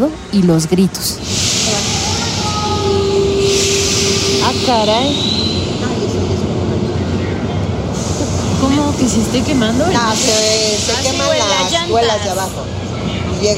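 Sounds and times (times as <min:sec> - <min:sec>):
speech: 0:00.0 - 0:01.6, 0:04.7 - 0:05.4, 0:08.6 - 0:12.8, 0:13.4 - 0:13.5
subway train at the platform rumbling: 0:00.0 - 0:13.5
metallic squeals: 0:01.9 - 0:06.2.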